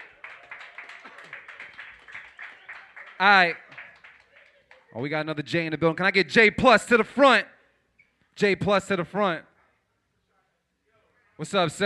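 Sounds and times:
audience applause: 0.0s - 4.9s
speech: 3.2s - 3.6s, 5.0s - 7.5s, 8.4s - 9.5s, 11.4s - 11.8s.

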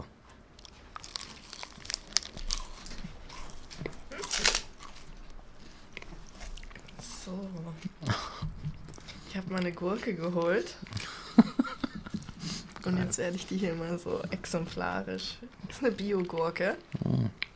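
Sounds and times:
someone biting and chewing a protein bar: 0.1s - 17.5s
protein bar wrapper crinkling: 0.6s - 5.3s
speech: 9.4s - 10.9s, 12.9s - 17.3s
laughter: 11.0s - 12.6s.

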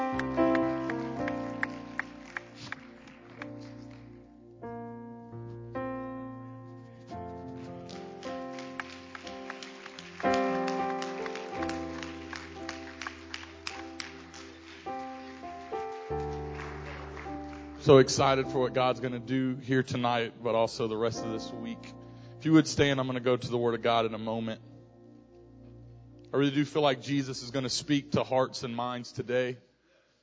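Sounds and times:
audience clapping: 0.0s - 4.3s, 7.6s - 18.4s
sustained organ or keyboard chords: 0.0s - 29.2s
speech: 17.9s - 24.7s, 26.3s - 29.7s.

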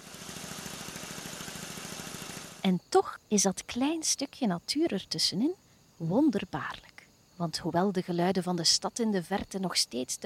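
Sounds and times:
agricultural machines driving in fields: 0.0s - 2.6s
speech: 2.6s - 10.2s.

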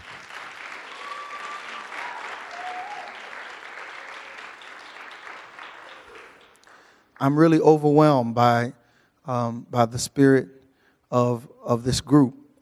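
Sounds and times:
faint cheers: 0.0s - 6.7s
audience hand clapping: 0.0s - 7.6s
speech: 7.2s - 12.6s.

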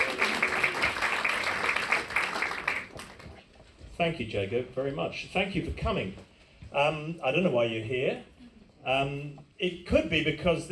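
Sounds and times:
audience applause: 0.0s - 3.4s
speech: 4.0s - 10.7s.

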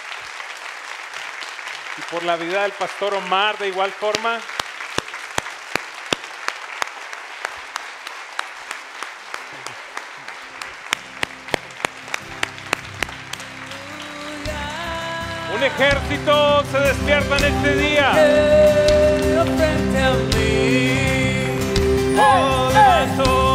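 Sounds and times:
audience applause: 0.0s - 14.6s, 22.1s - 23.4s
speech: 2.0s - 4.5s, 15.8s - 21.2s.

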